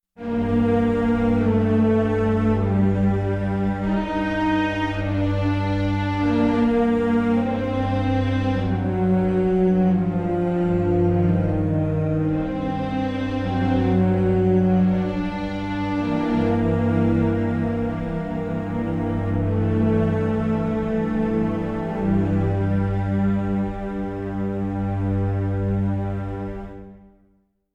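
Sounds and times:
tension strings: 0.2s - 27.0s.

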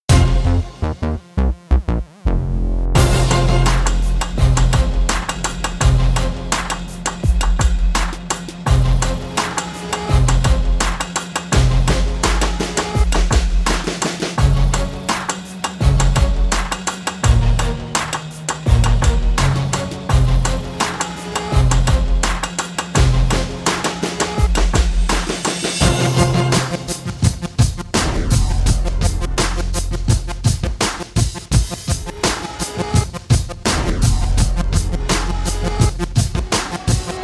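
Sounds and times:
hip hop music: 0.0s - 37.2s.

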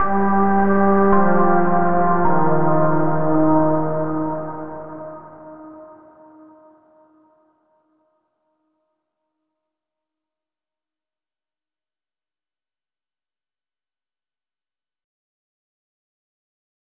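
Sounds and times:
overlay tone: 0.0s - 6.2s.

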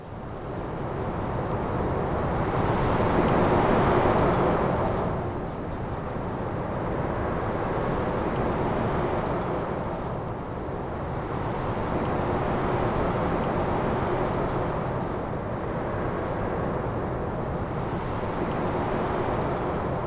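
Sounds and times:
wind in a hall: 0.0s - 20.0s.

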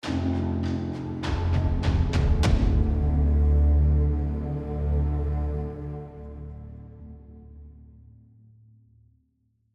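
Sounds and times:
tension music ending: 0.0s - 7.1s.

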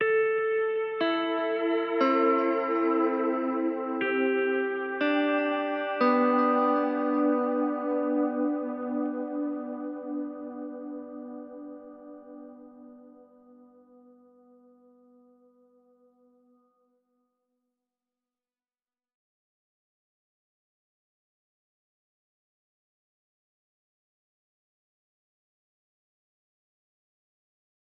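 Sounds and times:
guitar: 0.0s - 16.7s.

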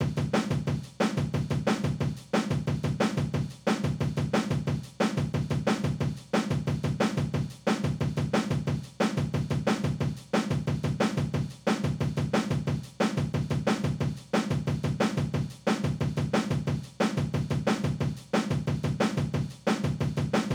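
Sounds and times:
breakbeat drum loop: 0.0s - 20.5s.

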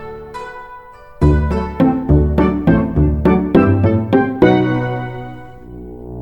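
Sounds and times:
side mission music loop: 1.2s - 5.6s.

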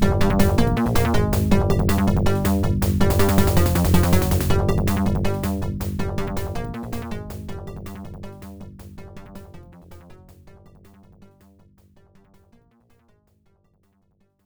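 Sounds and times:
boss battle game music: 0.0s - 9.7s.

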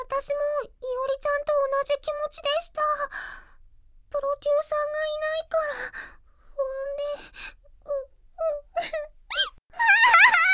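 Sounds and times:
speech: 0.2s - 3.5s, 4.1s - 10.1s
girl crying: 7.9s - 10.5s.

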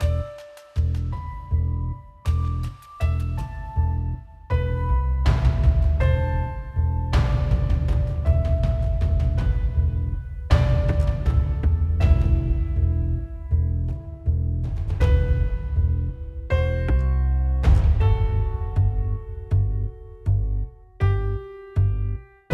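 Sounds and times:
credits music: 0.0s - 22.5s.

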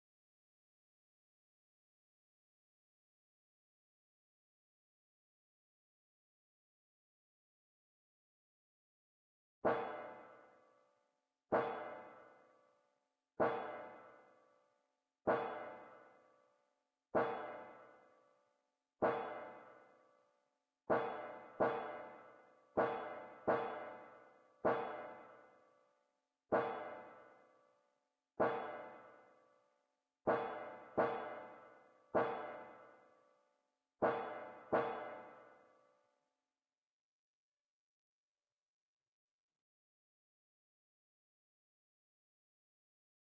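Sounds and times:
percussion: 9.6s - 10.8s, 11.5s - 12.6s, 13.4s - 14.5s, 15.3s - 16.4s, 17.2s - 18.2s, 19.0s - 20.0s, 20.9s - 25.6s, 26.5s - 27.5s, 28.4s - 29.4s, 30.3s - 33.2s, 34.0s - 35.9s.

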